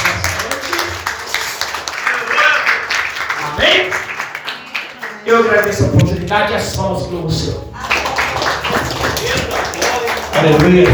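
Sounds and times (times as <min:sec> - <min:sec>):
audience applauding: 0:00.0 - 0:05.6, 0:07.8 - 0:10.9
speech: 0:05.3 - 0:07.7, 0:10.4 - 0:10.9.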